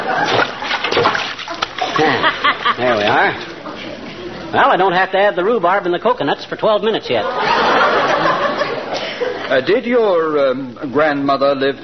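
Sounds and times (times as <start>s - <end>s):
laughter: 0.0s - 0.8s, 1.8s - 4.3s, 7.2s - 9.6s
potato chunks splashing into a pot of liquid: 0.2s - 2.1s
speech: 2.0s - 3.5s, 4.5s - 7.6s, 9.5s - 11.8s.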